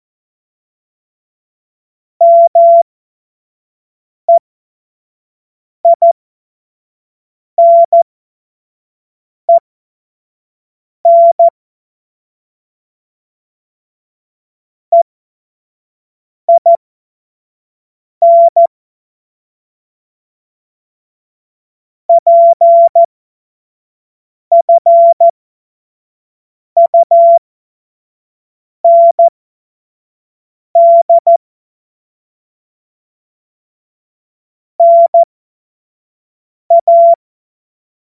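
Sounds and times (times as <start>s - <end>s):
morse code beeps: 2.2s - 2.8s, 5.9s - 6.2s, 7.6s - 8.0s, 11.1s - 11.5s, 16.5s - 16.8s, 18.2s - 18.7s, 22.1s - 23.1s, 24.5s - 25.3s, 26.8s - 27.4s, 28.9s - 29.3s, 30.8s - 31.4s, 34.8s - 35.3s, 36.7s - 37.2s.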